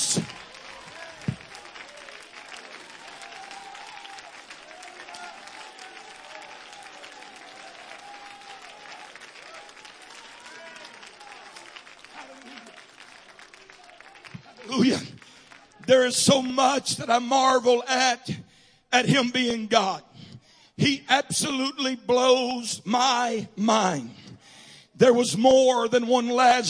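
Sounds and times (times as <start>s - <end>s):
audience clapping hands in praise: 0.0s - 17.6s
speech: 15.9s - 18.4s, 19.0s - 20.1s, 20.8s - 24.2s, 25.0s - 26.6s.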